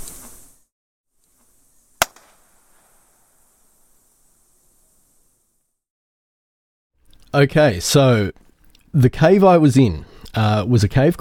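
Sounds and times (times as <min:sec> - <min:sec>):
sharp impulse bang echoing inside a huge limestone cave in Borneo: 0:02.0 - 0:03.4
speech: 0:07.3 - 0:11.1.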